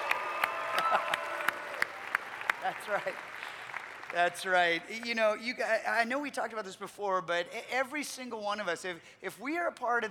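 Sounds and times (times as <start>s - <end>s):
high-pitched whoops and cheering voices: 0.0s - 2.6s
crowd applause: 0.0s - 4.6s
speech: 0.9s - 1.5s, 2.6s - 10.0s.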